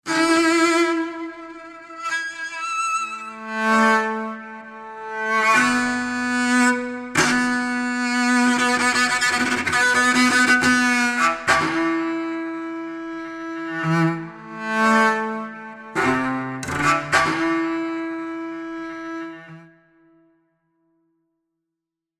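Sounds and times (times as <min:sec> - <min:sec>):
music: 0:00.0 - 0:21.6.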